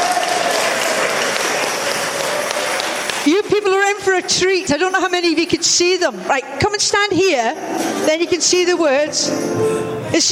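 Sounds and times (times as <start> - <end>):
audience applause: 0.0 - 3.3
speech: 3.9 - 10.3.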